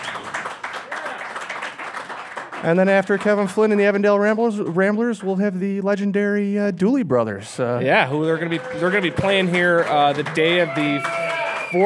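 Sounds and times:
audience applause for a musician at a live show: 0.0s - 4.0s, 7.9s - 11.8s
speech: 2.6s - 11.8s.

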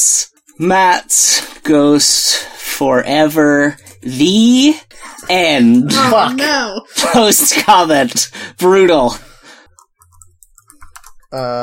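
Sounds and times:
speech: 0.6s - 9.3s, 11.3s - 11.6s
typing on a computer keyboard: 9.6s - 11.4s.

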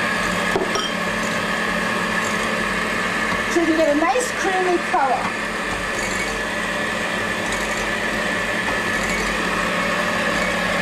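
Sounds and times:
electric mixer beaters running: 0.0s - 10.8s
speech: 3.7s - 5.4s.

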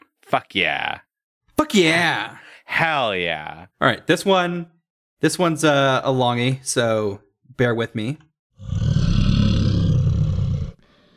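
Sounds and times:
speech: 0.3s - 1.0s, 1.6s - 8.8s
bear growling: 8.6s - 11.0s.

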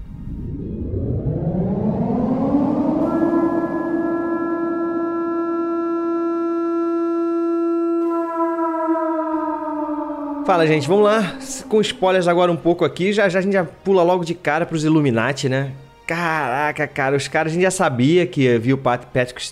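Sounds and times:
siren transition sound effect winding up and wailing: 0.1s - 13.1s
speech: 10.5s - 19.5s.

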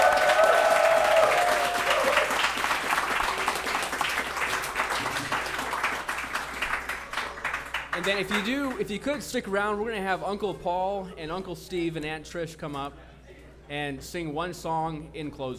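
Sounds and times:
audience applause: 0.0s - 8.4s
speech: 8.0s - 13.1s, 13.7s - 15.5s.

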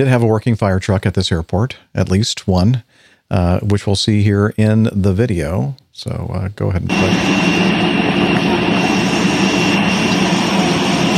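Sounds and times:
speech: 0.0s - 8.0s
jet engine noise at an airport: 6.8s - 11.1s.

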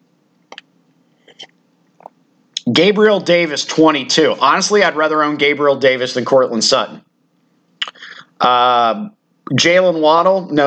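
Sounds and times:
coffee being sipped with slurping and swallowing: 1.2s - 2.1s
speech: 2.7s - 7.0s, 8.4s - 10.6s.

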